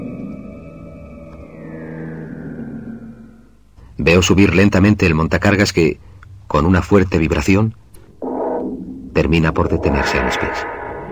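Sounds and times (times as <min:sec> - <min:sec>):
shrill shift-change siren: 0:00.0 - 0:03.7, 0:08.2 - 0:11.1
speech: 0:04.0 - 0:07.8, 0:09.2 - 0:10.8.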